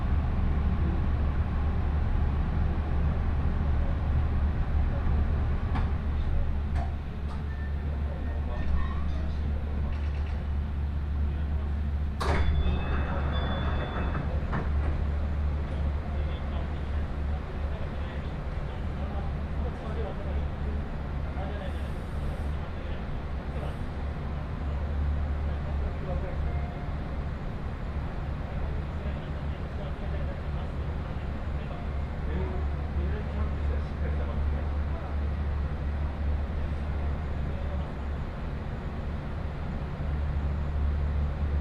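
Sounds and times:
Chuo West Line 315 series train carriage rumbling: 0:00.0 - 0:41.5
sharp clack and squeal: 0:12.2 - 0:15.0.

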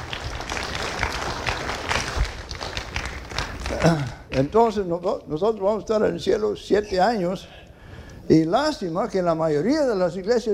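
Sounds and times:
audience applause: 0:00.0 - 0:04.4
speech: 0:03.8 - 0:07.6, 0:08.3 - 0:10.5.

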